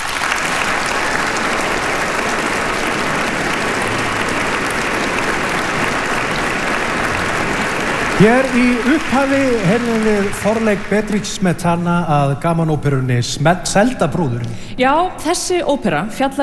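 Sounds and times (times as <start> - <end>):
audience applause for an orchestra at an evening concert: 0.0 - 13.2
laughter: 0.4 - 12.6
speech: 8.2 - 16.4.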